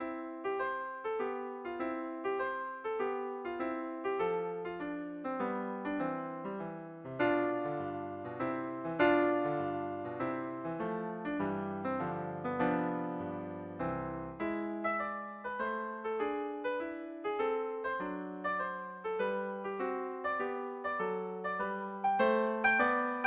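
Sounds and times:
piano sonatina: 0.0 - 23.2.

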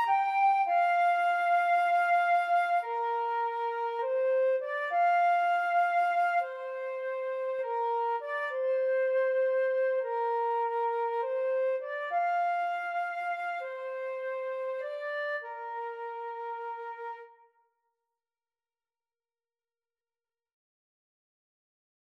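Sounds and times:
flute and clarinet duet: 0.0 - 17.4.

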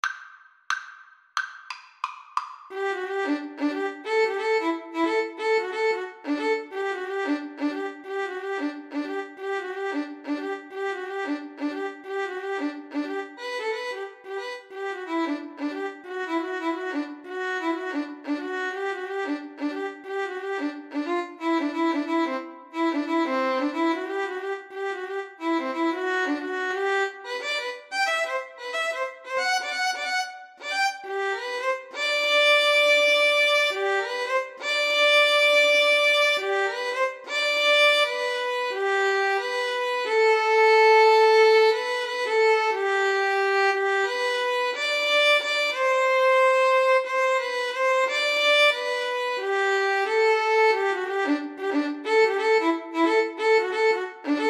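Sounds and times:
violin duet: 2.7 - 54.4.

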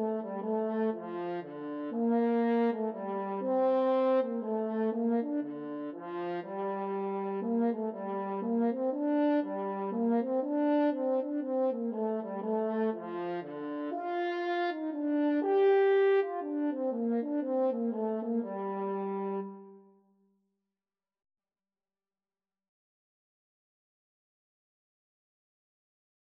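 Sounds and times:
french horn duet: 0.0 - 19.8.

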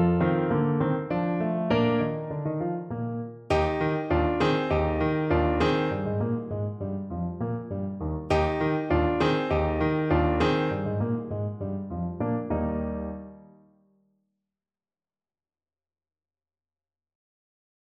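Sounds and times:
musette: 0.0 - 13.6.

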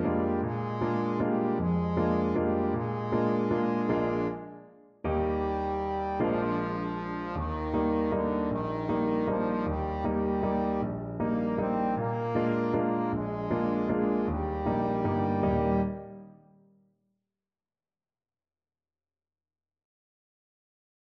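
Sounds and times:
trombone: 0.0 - 4.5, 5.1 - 16.2.

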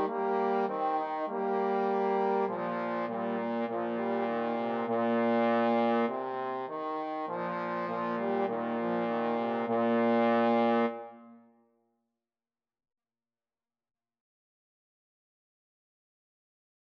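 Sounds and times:
trombone duet: 0.0 - 11.1.

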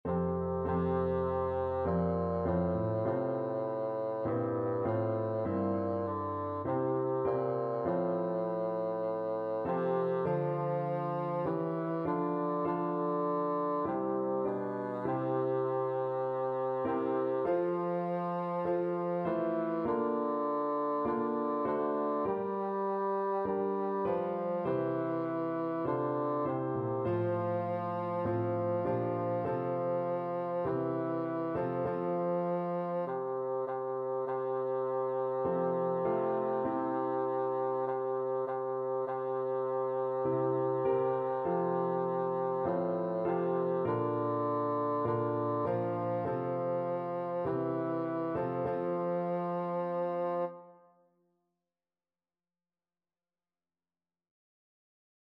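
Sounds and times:
bassoon playing a hymn: 0.0 - 50.8.

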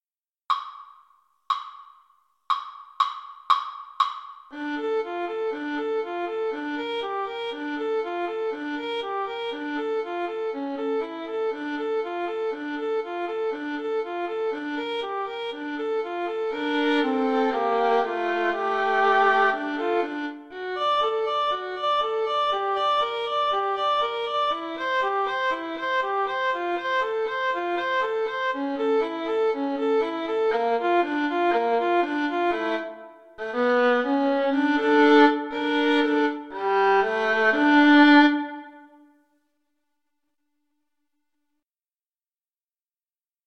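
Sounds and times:
violin duet: 4.5 - 39.1.

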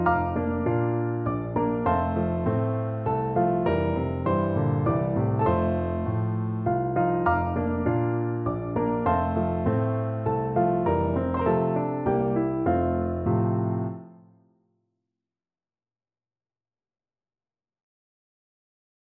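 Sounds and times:
piano duet lullaby: 0.0 - 14.2.

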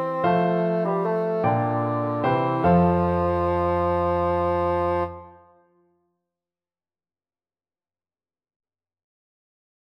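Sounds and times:
bassoon melody: 0.0 - 5.8.

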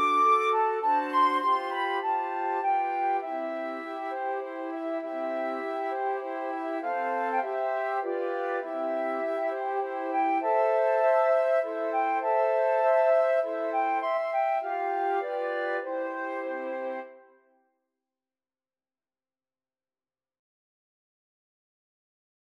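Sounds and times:
flute quartet: 0.0 - 17.3.

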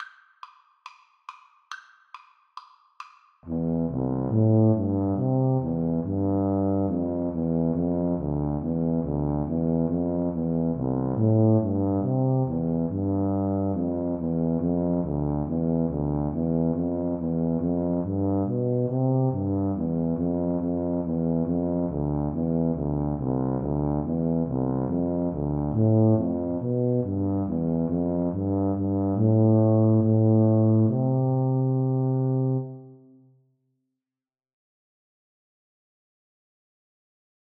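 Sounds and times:
tuba duet: 3.4 - 33.2.

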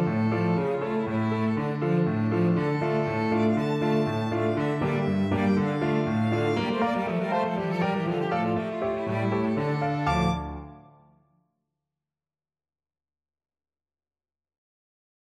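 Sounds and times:
piano trio playing: 0.0 - 11.0.

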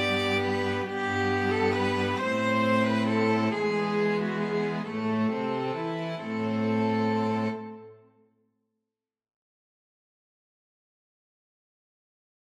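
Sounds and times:
string quartet: 0.0 - 8.0.

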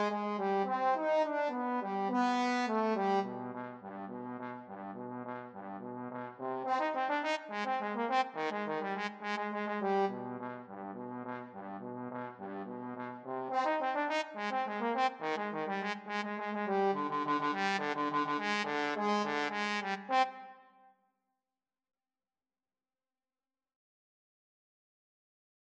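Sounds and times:
trombone duet: 0.0 - 20.3.

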